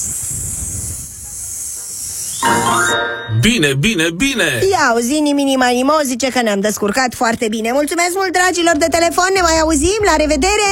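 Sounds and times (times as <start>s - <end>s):
voice imitating a snake's hiss: 0.0s - 2.6s
brief high tonal sound: 2.4s - 3.6s
speech: 2.9s - 10.7s.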